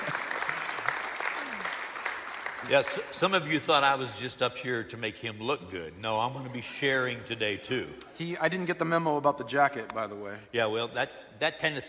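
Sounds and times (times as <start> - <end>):
church congregation clapping to welcome a pastor at a Sunday morning service: 0.0 - 4.0
speech: 2.6 - 11.8.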